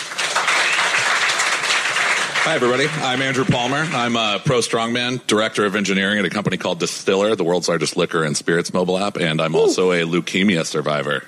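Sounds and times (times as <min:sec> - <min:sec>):
audience applause: 0:00.0 - 0:04.2
speech: 0:02.4 - 0:11.2.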